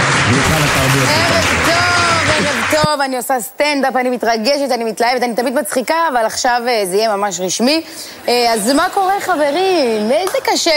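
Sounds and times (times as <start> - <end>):
crowd applause sound effect: 0.0 - 2.9
speech: 0.3 - 1.8, 2.4 - 10.7.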